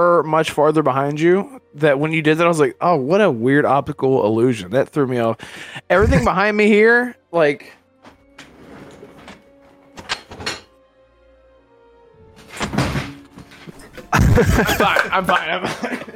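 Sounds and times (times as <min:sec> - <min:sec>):
speech: 0:00.0 - 0:07.8, 0:14.4 - 0:16.1
laughter: 0:05.9 - 0:06.4, 0:14.1 - 0:16.1
bottles being knocked over: 0:08.4 - 0:10.7, 0:12.4 - 0:15.6.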